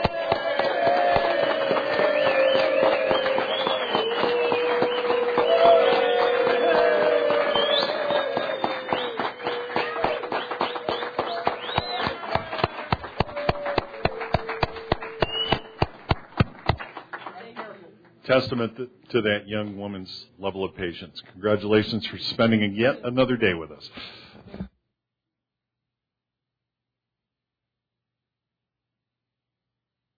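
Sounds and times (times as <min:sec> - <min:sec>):
crowd applause: 0:00.0 - 0:17.7
speech: 0:18.4 - 0:24.2.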